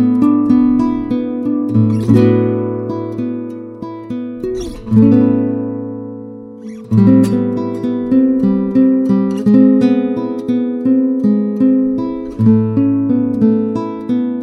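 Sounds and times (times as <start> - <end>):
Ziricote 5 string guitar: 0.0 - 14.4.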